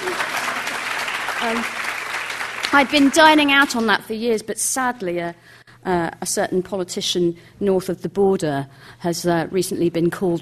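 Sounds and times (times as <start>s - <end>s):
audience applause: 0.0s - 3.6s
speech: 1.4s - 1.8s, 2.7s - 10.4s.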